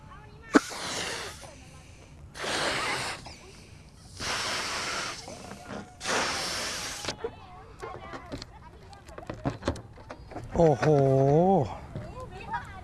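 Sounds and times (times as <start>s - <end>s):
person blowing breath into a balloon: 0.6s - 1.5s, 2.4s - 3.4s, 4.1s - 7.2s
speech: 10.6s - 11.8s.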